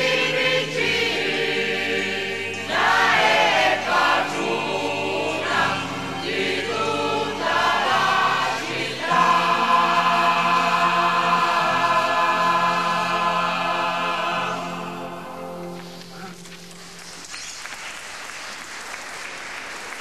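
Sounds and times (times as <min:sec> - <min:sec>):
people singing songs to the Madonna in a procession: 0:00.0 - 0:15.8.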